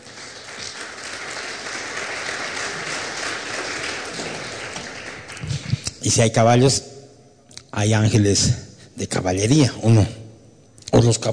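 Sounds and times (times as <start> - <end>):
crowd applauding: 0.0 - 5.8
speech: 6.0 - 6.9, 7.8 - 10.2, 11.0 - 11.3.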